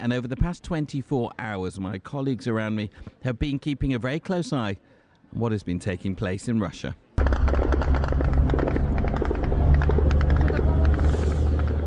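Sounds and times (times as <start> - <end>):
speech: 0.0 - 7.6
Ukrainian military drones hitting targets in Russia: 7.2 - 11.8.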